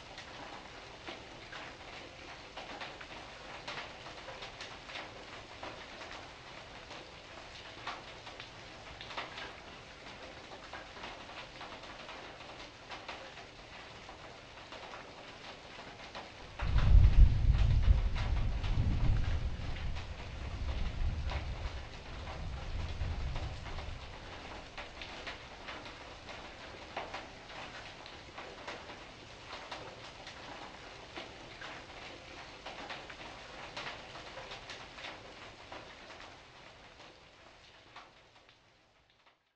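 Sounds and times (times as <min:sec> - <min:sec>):
rain heard indoors: 0:00.0 - 0:39.5
thunder: 0:16.5 - 0:25.8.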